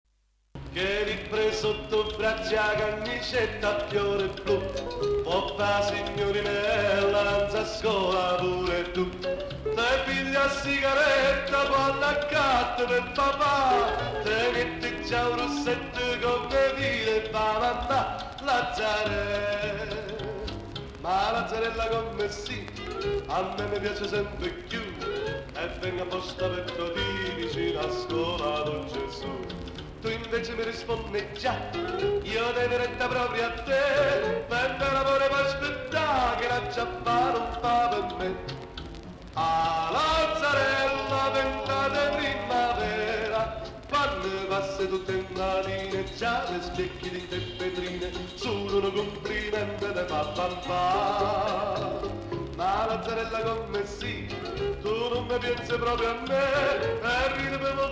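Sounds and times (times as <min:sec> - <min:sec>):
Italian song: 0:00.6 - 0:57.8.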